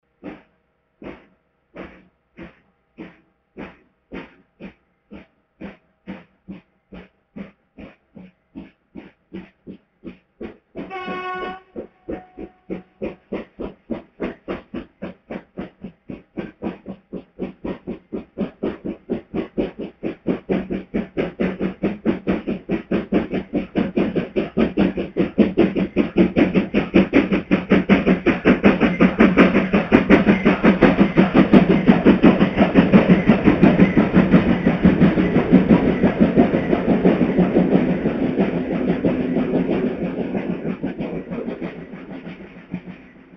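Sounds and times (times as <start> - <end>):
steam locomotive pistons: 0.1 - 43.3.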